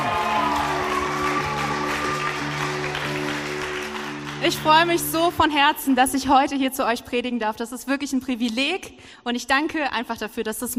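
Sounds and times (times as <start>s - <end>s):
audience applause: 0.0s - 5.1s
speech: 4.4s - 10.7s.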